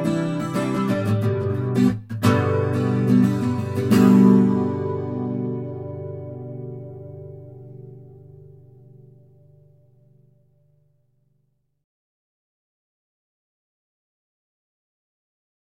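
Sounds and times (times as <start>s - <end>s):
acoustic guitar: 0.0s - 10.9s.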